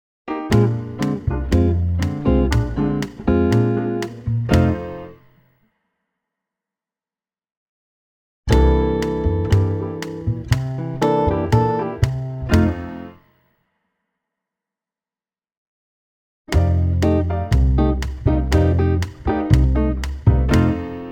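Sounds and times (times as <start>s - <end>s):
Latin rhythm pulse exercise at 120 BPM: 0.3s - 5.3s, 8.5s - 13.2s, 16.5s - 21.1s.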